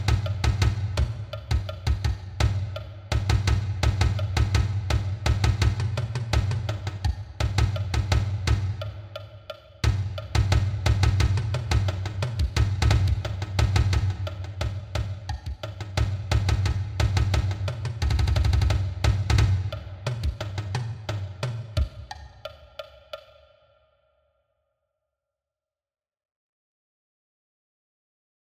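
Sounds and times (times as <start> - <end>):
marching bass drum: 0.0 - 9.2, 9.8 - 22.2.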